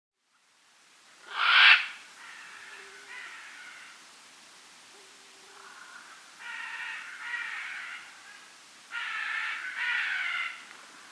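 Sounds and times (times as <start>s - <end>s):
red-and-green macaw squawking in South America: 1.3s - 4.0s, 5.0s - 11.0s.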